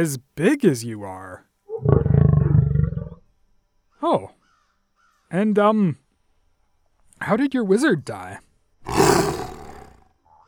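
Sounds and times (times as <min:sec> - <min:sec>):
speech: 0:00.0 - 0:02.0, 0:04.0 - 0:04.4, 0:05.3 - 0:06.0, 0:07.2 - 0:09.3
big cat roaring: 0:01.8 - 0:03.2, 0:08.8 - 0:10.1.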